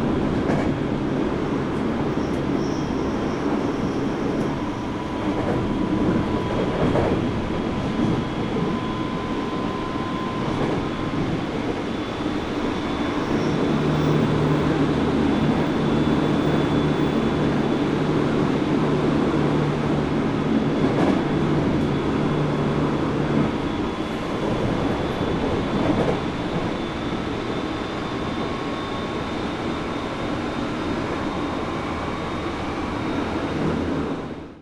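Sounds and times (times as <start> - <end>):
Tokyo metro train: 0.0 - 34.5.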